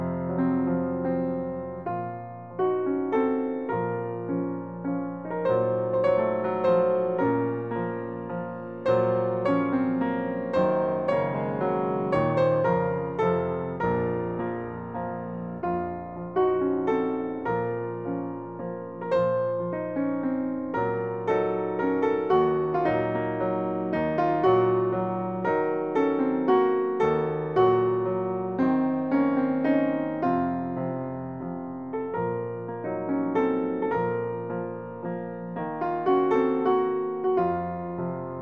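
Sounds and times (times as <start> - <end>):
Armenian song on piano: 0.0 - 38.4.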